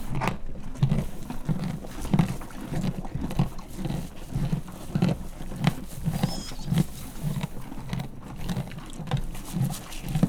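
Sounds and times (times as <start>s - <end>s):
horse eating corn in a farmyard: 0.0s - 10.2s.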